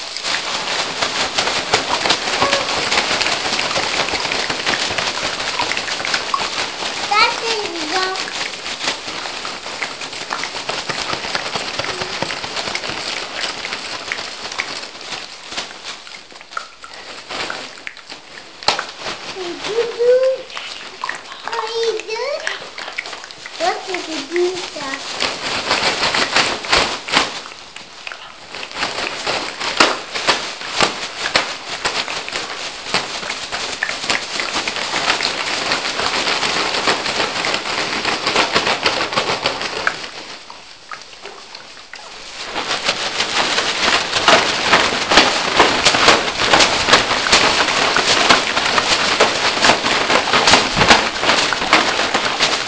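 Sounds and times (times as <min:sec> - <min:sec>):
bags rustling: 0:00.0 - 0:52.6
rain: 0:00.0 - 0:52.6
mouth sounds: 0:02.3 - 0:03.0, 0:19.4 - 0:25.0.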